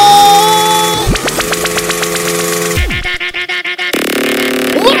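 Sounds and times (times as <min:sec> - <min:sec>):
motorcycle engine revving at a live event in Porto de Moz: 0:00.1 - 0:04.8.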